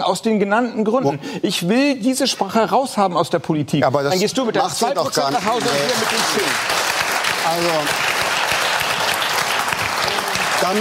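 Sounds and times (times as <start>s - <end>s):
speech: 0.1s - 6.9s, 7.5s - 8.1s
audience applause: 5.0s - 10.7s.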